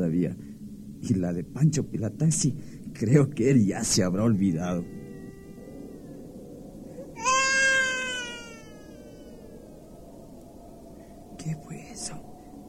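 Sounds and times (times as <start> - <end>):
speech: 1.0 - 5.0
baby crying: 4.5 - 6.2, 6.9 - 9.6.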